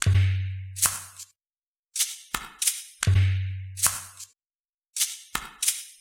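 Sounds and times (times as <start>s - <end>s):
acoustic percussion beats: 0.0s - 1.3s, 2.0s - 4.3s, 5.0s - 5.9s.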